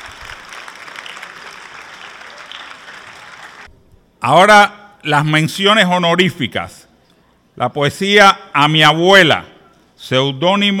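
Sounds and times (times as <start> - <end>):
audience applause: 0.0 - 3.7
speech: 4.2 - 6.8, 7.6 - 10.7.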